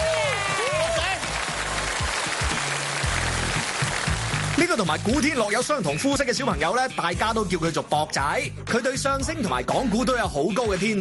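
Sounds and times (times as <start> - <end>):
applause: 0.0 - 5.4
speech: 4.6 - 11.0.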